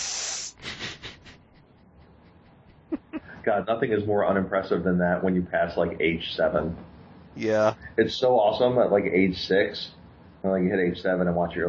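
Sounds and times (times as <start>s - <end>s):
person imitating hiss of black snake firework: 0.0s - 1.4s, 7.4s - 7.8s
speech: 3.4s - 11.6s.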